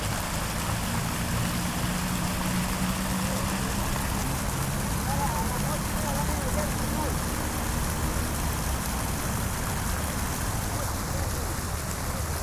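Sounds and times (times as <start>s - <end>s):
water fountain in the Plaza de Armas in Cusco Peru: 0.0s - 12.4s.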